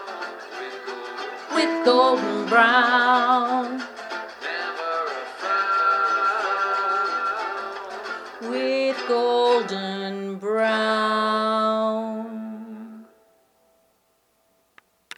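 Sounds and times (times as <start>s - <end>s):
voice with echo: 1.5s - 13.1s.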